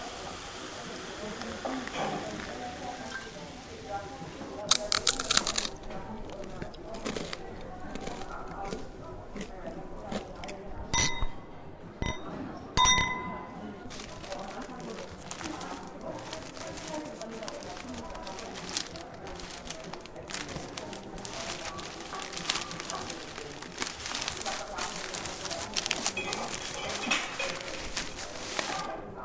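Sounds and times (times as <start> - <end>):
restaurant ambience: 0.0 - 29.2.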